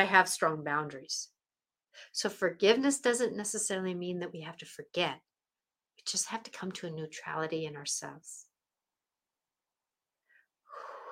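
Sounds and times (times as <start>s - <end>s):
speech: 0.0s - 1.4s, 2.0s - 5.3s, 6.0s - 8.5s
breath: 10.2s - 11.1s.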